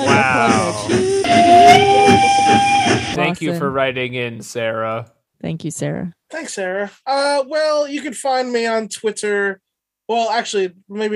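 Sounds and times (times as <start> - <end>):
steam train whistle: 0.0 - 3.2
speech: 3.4 - 11.1.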